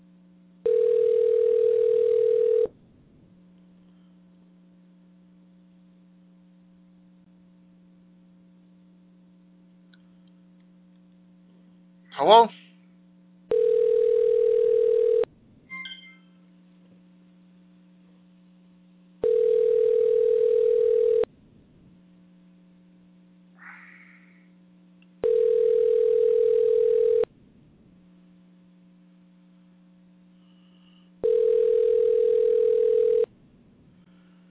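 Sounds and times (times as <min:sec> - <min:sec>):
faint low hum: 0:00.0 - 0:34.4
telephone ringback tone: 0:00.6 - 0:02.7, 0:13.5 - 0:16.2, 0:19.2 - 0:21.3, 0:25.2 - 0:27.3, 0:31.2 - 0:33.3
speech: 0:12.2 - 0:12.6.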